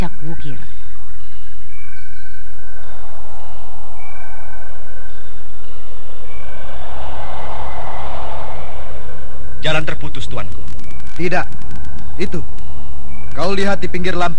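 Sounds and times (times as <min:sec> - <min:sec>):
strong swirling wind: 0:02.4 - 0:12.2
speech: 0:09.7 - 0:11.6, 0:12.2 - 0:12.6, 0:13.4 - 0:14.3.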